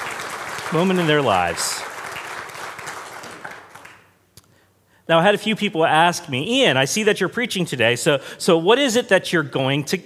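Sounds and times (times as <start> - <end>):
congregation applauding graduates at a Sunday service: 0.0 - 4.2
speech: 0.7 - 1.9, 5.1 - 10.0.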